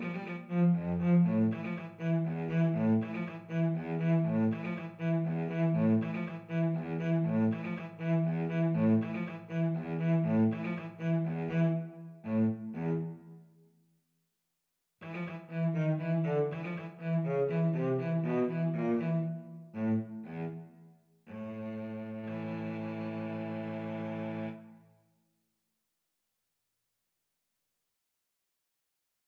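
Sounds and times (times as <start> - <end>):
violin and cello duet: 0.0 - 13.2, 15.0 - 20.7, 21.3 - 24.7.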